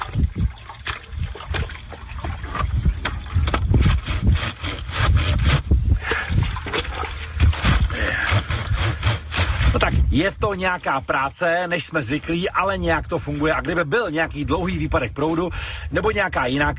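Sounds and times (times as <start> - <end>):
water sloshing and splashing: 0.0 - 11.4
wet laundry scrubbed on an old washboard: 0.0 - 13.8
speech: 10.2 - 16.7.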